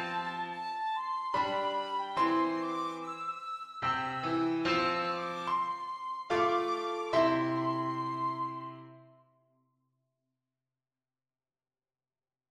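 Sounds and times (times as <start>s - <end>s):
tin whistle: 0.0s - 9.1s.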